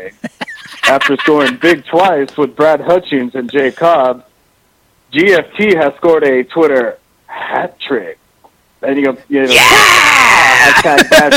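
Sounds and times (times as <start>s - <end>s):
speech: 0.0s - 0.3s, 0.9s - 4.3s, 5.1s - 8.2s, 8.8s - 11.3s
laughter: 0.1s - 1.8s, 10.4s - 11.3s
man screaming dramatically: 9.5s - 11.1s.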